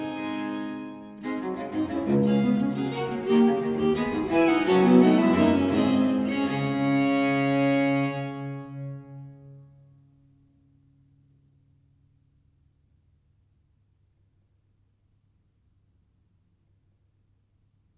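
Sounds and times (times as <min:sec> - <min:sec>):
English music for viols, sarabande in D major: 0:00.0 - 0:09.9.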